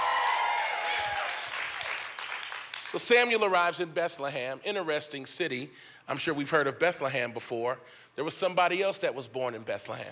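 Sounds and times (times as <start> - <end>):
church audience applauding and cheering: 0.0 - 3.2
speech: 2.9 - 10.1.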